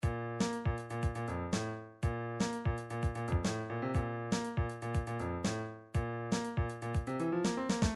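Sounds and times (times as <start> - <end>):
midi drums: 0.0 - 7.9.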